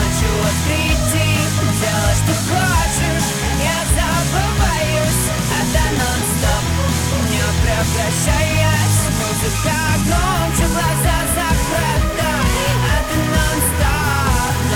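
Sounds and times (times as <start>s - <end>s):
music loop: 0.0s - 14.7s.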